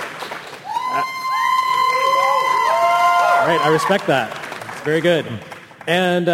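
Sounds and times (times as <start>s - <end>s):
audience cheering: 0.6s - 4.4s
speech: 3.5s - 6.3s.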